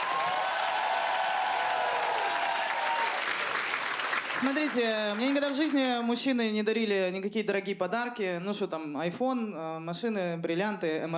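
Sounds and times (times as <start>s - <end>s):
audience applause: 0.0s - 5.8s
speech: 4.4s - 11.1s.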